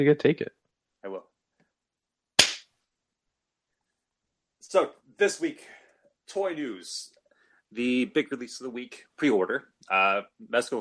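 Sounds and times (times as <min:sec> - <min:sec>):
speech: 0:00.0 - 0:00.6, 0:04.7 - 0:10.7
hand clap: 0:02.4 - 0:02.7.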